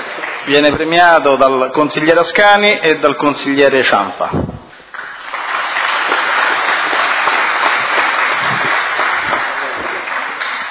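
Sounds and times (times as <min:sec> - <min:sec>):
crowd applause: 0:00.0 - 0:00.7, 0:04.7 - 0:10.6
speech: 0:00.5 - 0:04.5.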